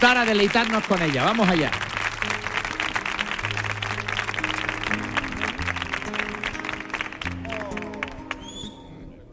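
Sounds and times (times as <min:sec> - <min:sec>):
speech: 0:00.0 - 0:01.9
crowd applauding: 0:00.0 - 0:09.1.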